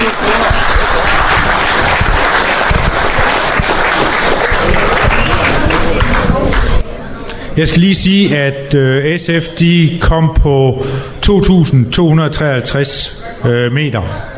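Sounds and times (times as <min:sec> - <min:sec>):
audience applause for prize winners: 0:00.0 - 0:06.8
speech: 0:07.6 - 0:14.3.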